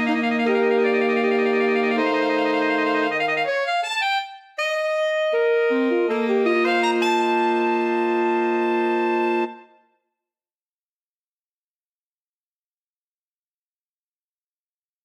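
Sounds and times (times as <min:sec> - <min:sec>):
saxophones: 0:00.0 - 0:09.8.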